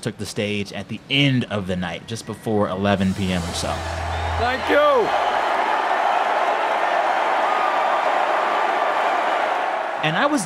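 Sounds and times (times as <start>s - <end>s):
speech: 0.0s - 5.4s, 10.0s - 10.4s
convention crowd roaring and cheering: 3.0s - 10.4s.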